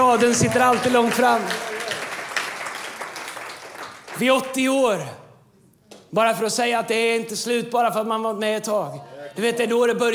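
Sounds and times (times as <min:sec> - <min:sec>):
audience applause: 0:00.0 - 0:04.5
speech: 0:00.1 - 0:02.0, 0:04.2 - 0:05.2, 0:06.1 - 0:10.1.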